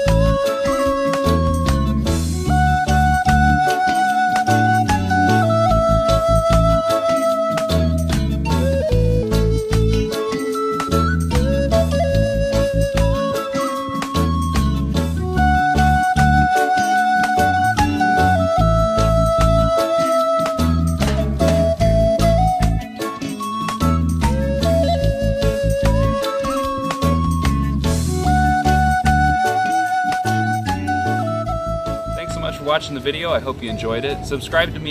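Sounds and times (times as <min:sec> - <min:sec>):
Native American flute: 0:00.0 - 0:34.8.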